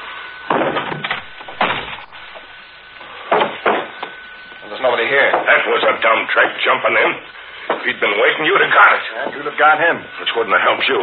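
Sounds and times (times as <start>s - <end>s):
door being kicked open: 0.5s - 2.1s, 3.3s - 3.9s
speech: 4.9s - 11.0s.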